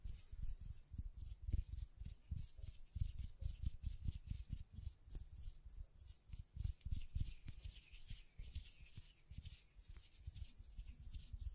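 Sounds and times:
hands tapping, scratching and brushing against a microphone: 0.0 - 11.5.

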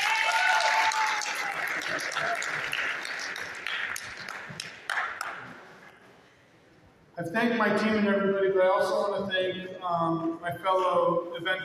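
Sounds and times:
audience round of applause: 0.0 - 5.8
speech: 1.9 - 3.7, 7.2 - 11.6.

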